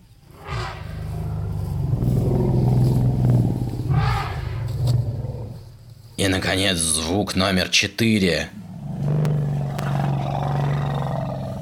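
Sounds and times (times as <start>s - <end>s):
elephant rumbling: 0.0s - 6.2s, 8.5s - 11.6s
speech: 6.2s - 8.6s.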